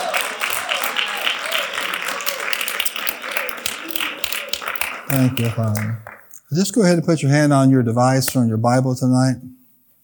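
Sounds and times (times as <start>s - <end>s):
audience hand clapping: 0.0s - 6.4s
speech: 5.1s - 9.6s.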